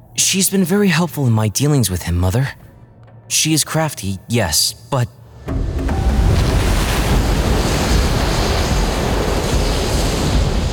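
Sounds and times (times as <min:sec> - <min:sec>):
speech: 0:00.2 - 0:02.6, 0:03.3 - 0:05.7
clouds rumbling: 0:05.3 - 0:10.7
mighty gush of seawater spilling into the throne room: 0:06.2 - 0:10.7.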